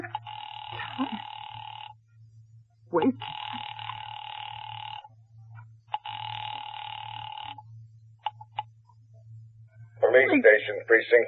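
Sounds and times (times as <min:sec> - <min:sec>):
telephone ringing on a call to the police: 0:00.0 - 0:02.0, 0:03.0 - 0:05.1, 0:05.9 - 0:07.6
constant low hum: 0:00.0 - 0:11.2
speech: 0:02.9 - 0:03.4, 0:10.4 - 0:11.2.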